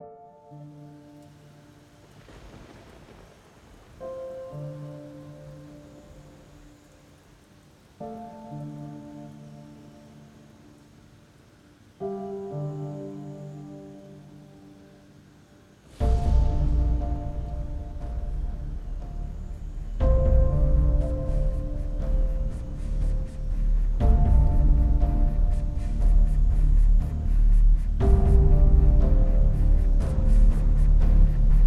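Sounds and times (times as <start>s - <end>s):
epic 120 BPM cinematic trailer music: 15.9s - 31.6s.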